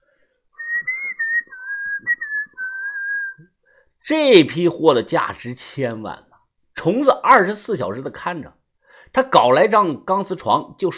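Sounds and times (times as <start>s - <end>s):
person whistling a tune: 0.6s - 3.5s
speech: 4.1s - 10.9s.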